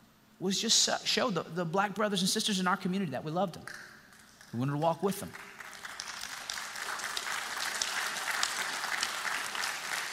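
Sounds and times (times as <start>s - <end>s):
speech: 0.4s - 3.9s, 4.5s - 5.5s
audience clapping: 4.1s - 10.1s.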